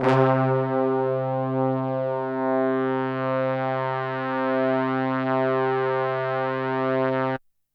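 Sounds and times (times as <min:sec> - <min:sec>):
horns: 0:00.0 - 0:07.4.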